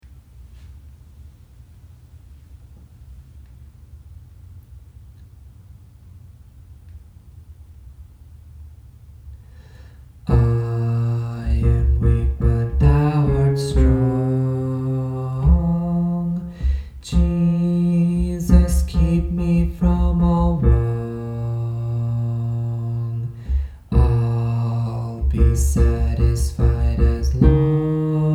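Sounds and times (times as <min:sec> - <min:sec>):
bass: 0:10.3 - 0:28.3.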